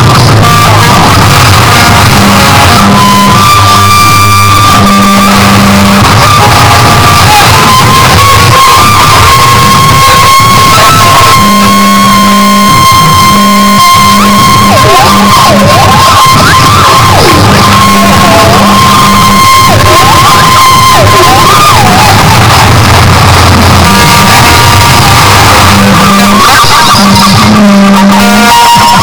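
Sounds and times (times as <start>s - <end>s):
guitar noise: 0.0s - 29.0s.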